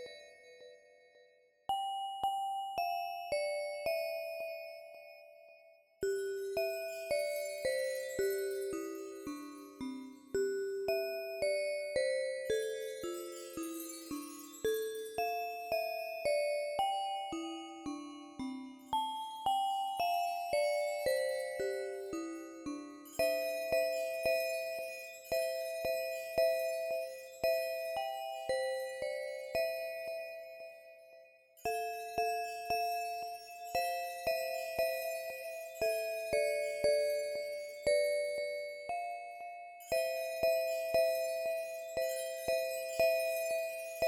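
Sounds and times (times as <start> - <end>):
Christmas song: 1.8 - 4.9, 6.6 - 44.0.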